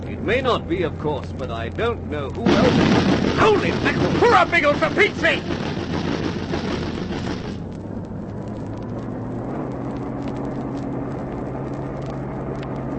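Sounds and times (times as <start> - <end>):
humming engine drone: 0.0 - 12.9
speech: 0.2 - 5.8
pom-pom gun firing: 2.4 - 7.6.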